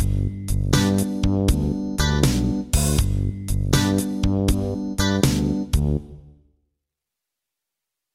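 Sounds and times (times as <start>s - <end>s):
three-string instrument boogie: 0.0s - 6.3s.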